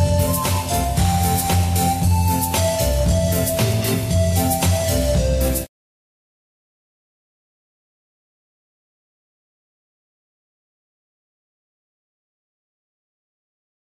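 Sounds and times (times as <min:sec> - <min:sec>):
instrumental music beat: 0:00.0 - 0:05.7.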